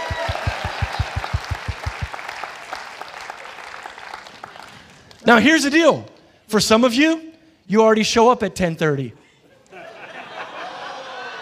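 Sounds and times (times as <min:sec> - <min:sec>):
audience clapping hands: 0:00.0 - 0:05.4
speech: 0:05.3 - 0:09.2
laughter: 0:09.5 - 0:11.4.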